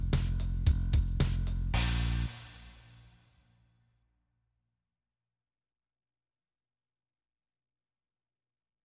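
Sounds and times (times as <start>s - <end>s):
blues bass startup: 0.0s - 2.9s.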